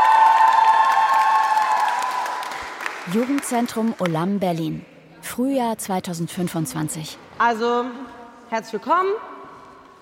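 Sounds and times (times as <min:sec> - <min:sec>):
crowd applause: 0:00.0 - 0:03.6
speech: 0:03.1 - 0:09.3.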